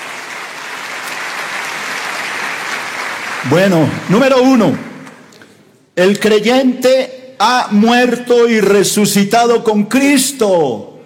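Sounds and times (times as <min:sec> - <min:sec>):
audience applause: 0:00.0 - 0:05.2
speech: 0:03.4 - 0:04.9, 0:06.0 - 0:10.9.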